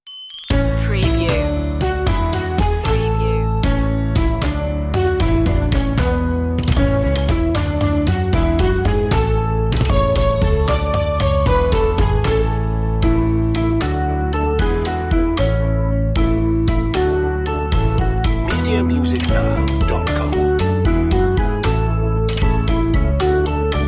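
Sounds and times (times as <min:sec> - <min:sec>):
nursery rhyme backing music: 0:00.1 - 0:23.8.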